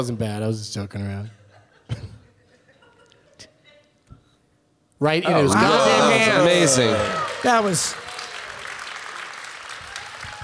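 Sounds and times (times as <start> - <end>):
speech: 0.0 - 2.1, 5.0 - 8.0
laughter: 1.4 - 4.0, 5.3 - 7.8
applause: 5.6 - 10.4.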